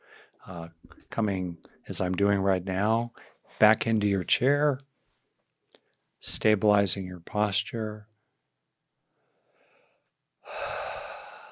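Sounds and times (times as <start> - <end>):
deep breath during a seated relaxation exercise: 0.0 - 0.4, 9.1 - 11.5
speech: 0.4 - 4.9, 6.2 - 8.1.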